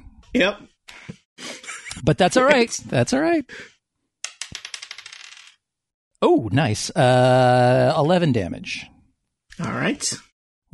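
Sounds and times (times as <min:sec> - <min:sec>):
speech: 0:00.3 - 0:00.7, 0:02.0 - 0:03.7, 0:06.2 - 0:08.9, 0:09.6 - 0:10.7
dice clattering on a table: 0:04.2 - 0:05.6.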